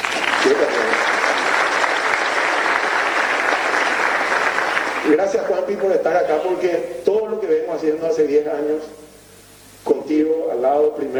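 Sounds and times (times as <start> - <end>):
audience applause: 0.0 - 5.2
speech: 0.5 - 0.8, 5.3 - 9.0, 10.1 - 11.1.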